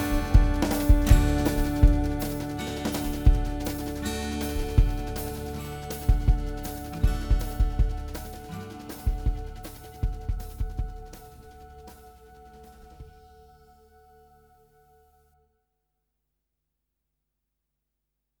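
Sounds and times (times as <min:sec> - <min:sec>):
instrumental music: 0:00.0 - 0:14.2.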